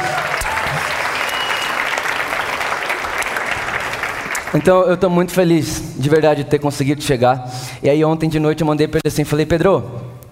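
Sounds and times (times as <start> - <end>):
audience applause: 0.0 - 4.7
speech: 4.5 - 10.1.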